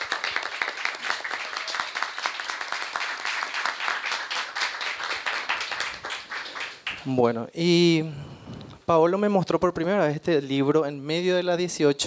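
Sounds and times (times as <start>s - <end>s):
audience applause: 0.0s - 7.1s
speech: 7.0s - 12.0s.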